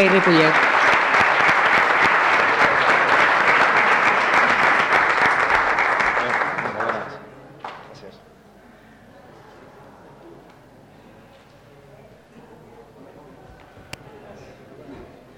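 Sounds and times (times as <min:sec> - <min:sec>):
speech: 0:00.0 - 0:00.7
audience applause: 0:00.0 - 0:07.8.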